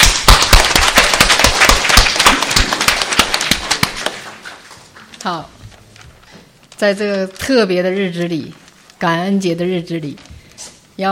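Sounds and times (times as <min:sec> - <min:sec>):
crowd applauding: 0:00.0 - 0:04.3
speech: 0:05.2 - 0:05.6, 0:06.8 - 0:10.2.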